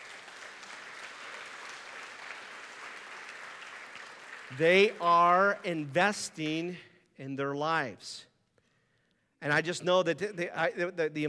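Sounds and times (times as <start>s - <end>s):
audience applause: 0.0s - 5.9s
speech: 4.5s - 8.3s, 9.4s - 11.2s.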